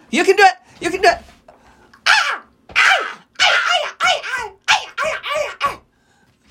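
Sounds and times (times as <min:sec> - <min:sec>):
speech: 0:00.1 - 0:01.3
person imitating bird calls: 0:02.0 - 0:05.8.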